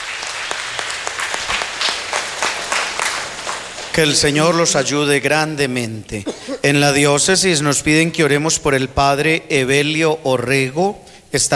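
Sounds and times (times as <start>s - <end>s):
audience applause: 0.0s - 4.9s
speech: 4.0s - 11.5s.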